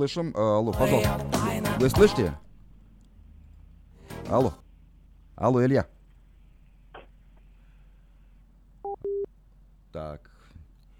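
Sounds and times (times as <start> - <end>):
speech: 0.0 - 2.5, 4.3 - 4.6, 5.4 - 6.0, 10.0 - 10.3
low telephone line hum: 0.0 - 10.9
telephone busy signal beeps: 8.8 - 9.3.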